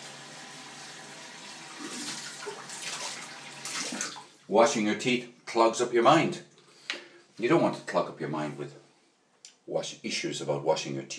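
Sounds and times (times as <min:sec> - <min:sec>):
shower water running: 0:00.0 - 0:04.4
speech: 0:04.5 - 0:06.5, 0:07.4 - 0:08.8, 0:09.7 - 0:11.1.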